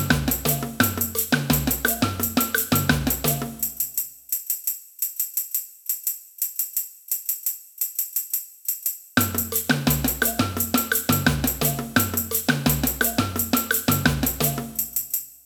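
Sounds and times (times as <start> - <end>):
samba band playing: 0.0 - 3.8, 9.2 - 15.0.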